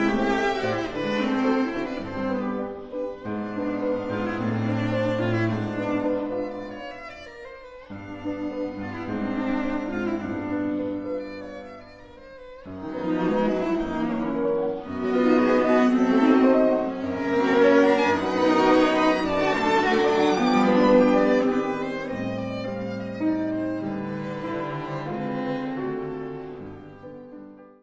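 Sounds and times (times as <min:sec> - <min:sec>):
piano quartet: 0:00.0 - 0:27.8.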